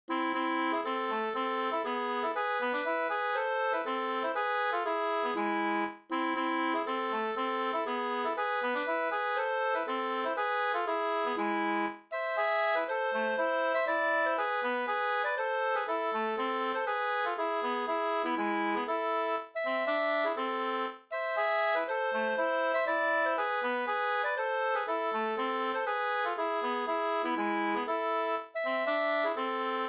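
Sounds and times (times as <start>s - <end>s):
two-part polska folk dance tune: 0.1s - 29.8s.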